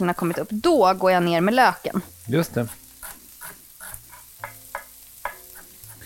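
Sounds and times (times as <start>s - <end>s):
speech: 0.0s - 2.8s
corn sizzling and popping in a frying pan: 0.0s - 6.0s
utensil stirring corn in a frying pan: 2.6s - 6.0s.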